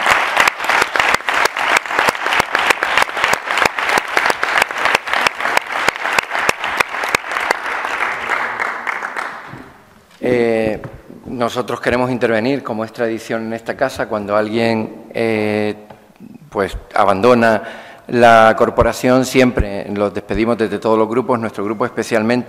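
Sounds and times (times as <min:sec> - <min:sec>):
audience applause: 0:00.0 - 0:09.8
speech: 0:10.2 - 0:15.8, 0:16.6 - 0:22.4.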